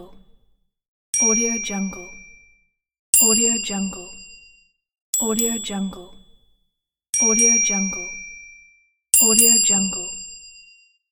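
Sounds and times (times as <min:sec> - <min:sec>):
ding: 0:01.1 - 0:05.5, 0:07.1 - 0:11.0.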